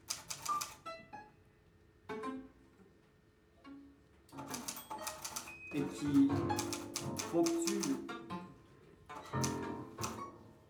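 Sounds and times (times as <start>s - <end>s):
typewriter keys clattering: 0.0s - 0.8s, 4.5s - 5.5s, 6.6s - 8.0s, 9.3s - 10.2s
typewriter end-of-line bell ringing: 4.6s - 5.6s, 6.6s - 7.9s
speech: 5.7s - 8.2s.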